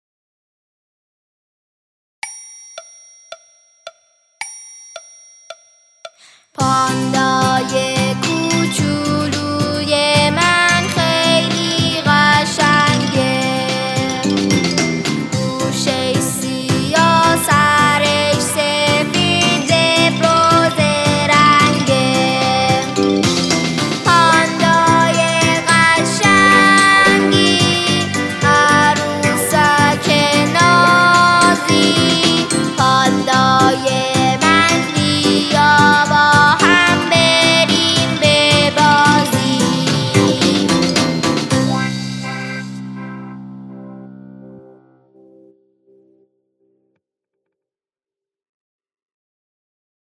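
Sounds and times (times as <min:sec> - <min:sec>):
vocals: 0:06.2 - 0:43.1.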